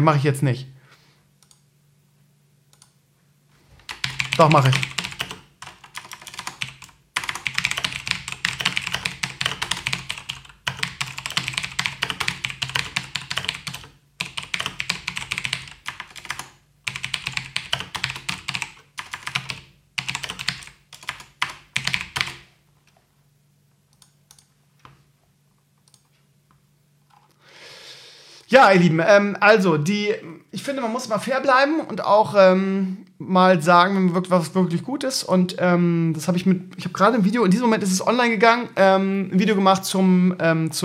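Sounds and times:
speech: 0.0s - 0.8s, 4.4s - 4.9s, 28.6s - 40.8s
typing on a computer keyboard: 3.9s - 22.5s.

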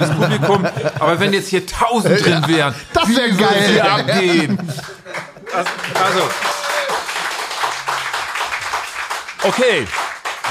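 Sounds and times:
speech: 0.0s - 4.9s, 5.5s - 6.5s, 9.4s - 10.4s
laughter: 0.0s - 7.0s
audience clapping: 3.8s - 10.4s.

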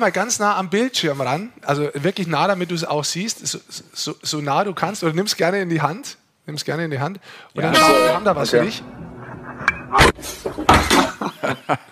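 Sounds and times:
speech: 0.0s - 9.0s, 10.2s - 11.9s
smartphone falling over onto a hard surface: 10.1s - 11.3s
laughter: 10.9s - 11.9s.

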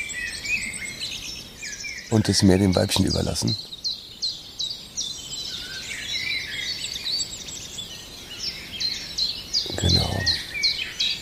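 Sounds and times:
hiss: 0.0s - 11.2s
speech: 2.1s - 3.8s
common chiffchaff singing its repetitive song: 9.6s - 10.8s.

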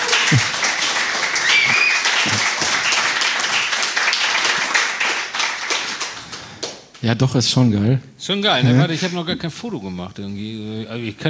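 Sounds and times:
audience clapping and applause: 0.0s - 7.1s
speech: 0.3s - 0.6s, 7.0s - 11.2s.

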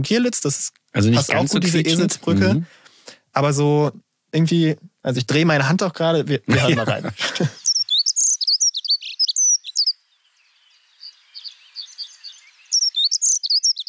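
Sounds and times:
speech: 0.0s - 2.8s, 3.4s - 7.6s
laughter: 1.0s - 2.6s, 6.5s - 7.7s
songbird twittering like squeaky bicycle chain: 7.6s - 13.8s.

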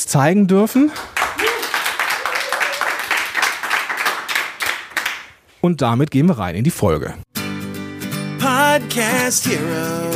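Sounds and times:
speech: 0.1s - 1.2s, 5.6s - 7.3s, 8.5s - 10.1s
short applause: 1.0s - 5.3s.

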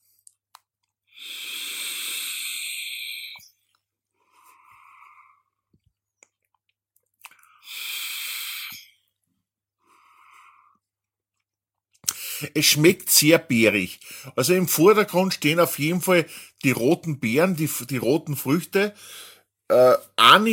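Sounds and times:
deep drag from an e-cigarette: 1.2s - 3.5s, 7.6s - 9.0s
speech: 12.4s - 20.5s.

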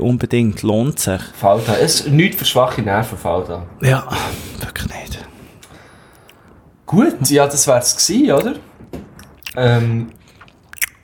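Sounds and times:
speech: 0.0s - 5.3s, 6.9s - 8.7s, 9.6s - 10.2s
person chewing while eating: 9.2s - 11.0s.

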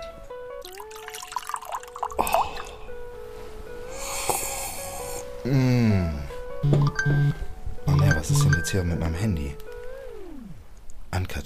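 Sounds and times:
drink pouring into a glass: 0.6s - 2.7s
speech: 5.4s - 7.4s, 8.3s - 9.7s.

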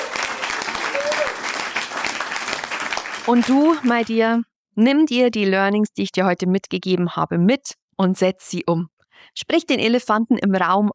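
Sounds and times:
applause: 0.0s - 4.2s
speech: 3.2s - 10.9s.

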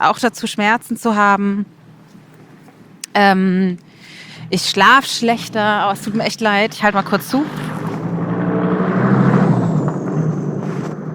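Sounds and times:
speech: 0.0s - 1.8s, 3.2s - 7.8s
cars driving past outside: 3.8s - 11.1s.

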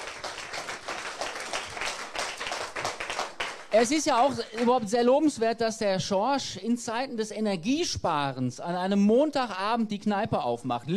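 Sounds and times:
audience applause: 0.0s - 4.8s
speech: 3.7s - 10.9s.

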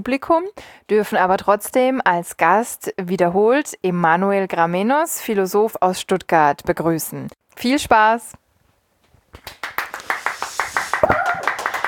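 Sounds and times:
speech: 0.0s - 8.4s
hand clapping applause: 9.4s - 11.8s.

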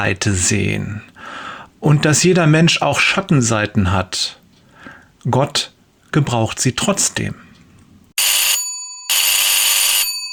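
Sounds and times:
speech: 0.0s - 4.4s, 5.2s - 7.5s
telephone ringing loudly: 8.2s - 10.3s.

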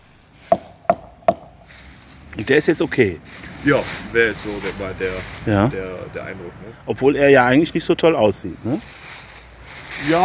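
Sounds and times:
knocking on a tree trunk to test it: 0.5s - 1.6s
speech: 2.4s - 9.0s, 10.0s - 10.2s.

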